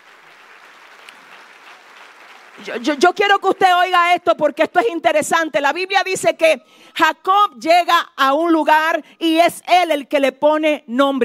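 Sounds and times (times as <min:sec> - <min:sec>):
audience applause: 0:00.0 - 0:03.4
speech: 0:02.6 - 0:11.2.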